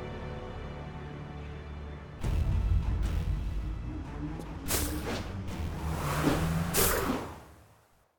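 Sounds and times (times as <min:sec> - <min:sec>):
outro sound effect: 0:02.2 - 0:07.9.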